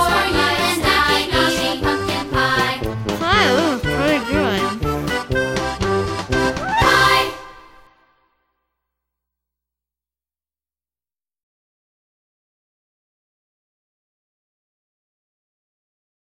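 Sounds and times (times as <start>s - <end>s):
polka music: 0.0s - 7.7s.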